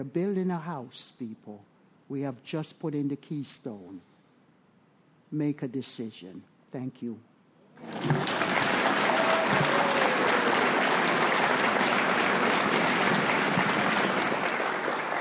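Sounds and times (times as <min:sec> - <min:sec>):
speech: 0:00.0 - 0:04.1, 0:05.3 - 0:08.4
crowd applauding: 0:07.8 - 0:15.1.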